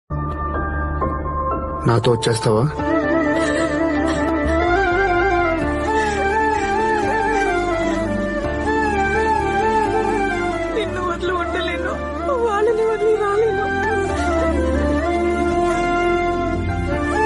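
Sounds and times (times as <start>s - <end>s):
background music ringtone: 0.1s - 17.2s.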